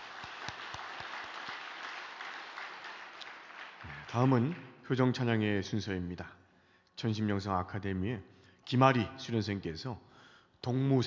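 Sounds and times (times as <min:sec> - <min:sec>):
audience applause: 0:00.0 - 0:04.7
speech: 0:04.1 - 0:06.4, 0:07.0 - 0:11.0.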